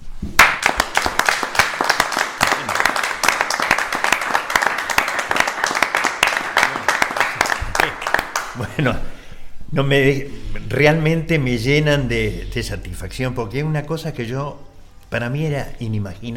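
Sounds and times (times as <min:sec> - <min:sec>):
audience applauding a guest: 0:00.4 - 0:08.6
speech: 0:08.6 - 0:09.1, 0:09.7 - 0:16.3.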